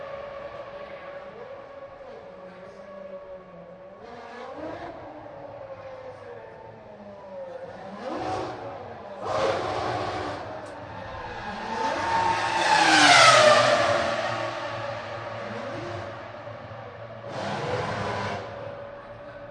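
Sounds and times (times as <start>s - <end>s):
F1 racing cars at speedway: 0.0s - 19.4s.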